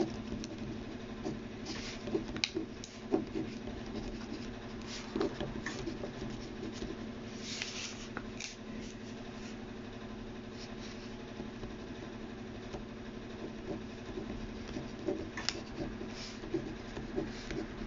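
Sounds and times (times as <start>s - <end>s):
handwriting scratching and tapping strokes: 0.0s - 8.1s, 13.4s - 17.8s
steady low hum: 0.0s - 17.8s.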